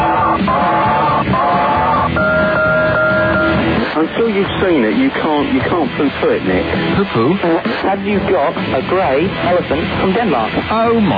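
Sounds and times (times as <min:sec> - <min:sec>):
noisy clamorous background: 0:00.0 - 0:11.1
unusual alarm clock ringing: 0:00.2 - 0:03.6
speech: 0:04.0 - 0:11.1.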